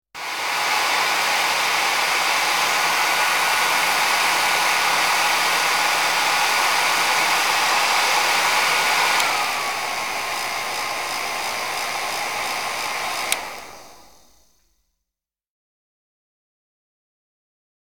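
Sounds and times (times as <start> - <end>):
hair dryer: 0.2 - 14.8.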